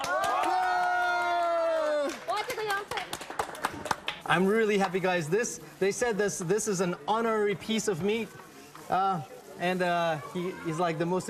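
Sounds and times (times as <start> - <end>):
group cheering at a gathering: 0.0 - 2.5
people clapping at a gathering: 0.0 - 5.0
speech: 4.3 - 11.2.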